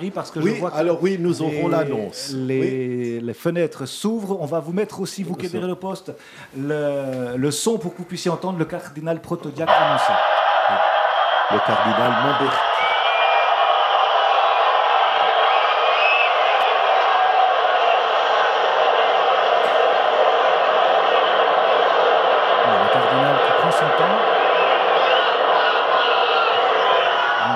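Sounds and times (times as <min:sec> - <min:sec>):
speech: 0:00.0 - 0:12.7
huge crowd cheering in Saint Peter's Square: 0:09.7 - 0:27.5.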